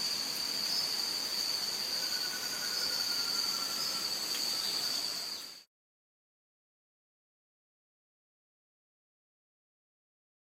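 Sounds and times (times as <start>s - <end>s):
buff-fronted foliage-gleaner singing: 0.0s - 5.7s.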